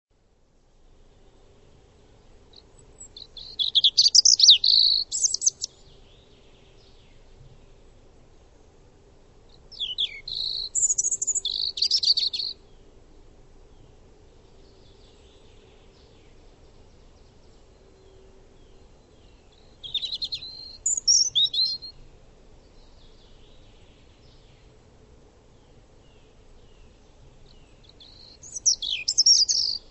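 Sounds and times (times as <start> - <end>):
bird chirps and twittering: 2.5 - 7.6, 9.7 - 12.6, 14.6 - 22.0, 26.1 - 29.8.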